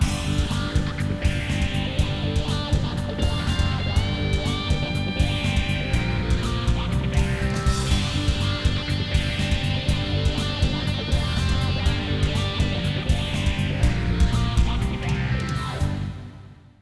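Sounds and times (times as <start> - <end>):
rock music: 0.0 - 16.6.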